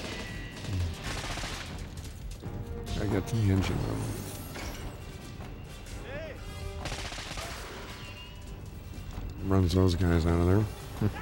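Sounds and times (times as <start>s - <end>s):
rapid gunfire from boat-mounted guns: 0.0s - 2.4s, 6.8s - 7.9s
speech: 3.0s - 4.2s, 9.5s - 11.2s.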